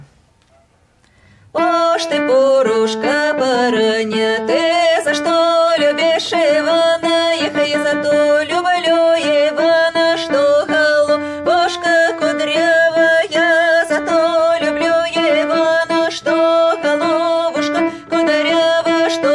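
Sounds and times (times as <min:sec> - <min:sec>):
soprano singing: 0:01.5 - 0:19.3.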